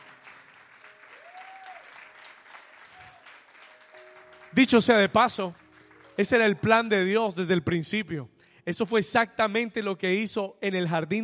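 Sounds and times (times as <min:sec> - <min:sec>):
audience applauding: 0:00.0 - 0:06.9
speech: 0:04.6 - 0:05.6, 0:06.2 - 0:11.2.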